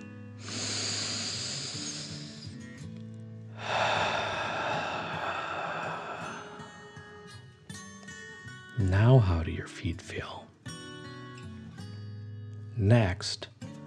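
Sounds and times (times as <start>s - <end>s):
slow dragon-like breathing in and out during a guided exercise: 0.4s - 2.7s, 3.5s - 7.5s
soft sustained tones: 3.7s - 7.4s
speech: 8.9s - 10.5s, 12.8s - 13.5s.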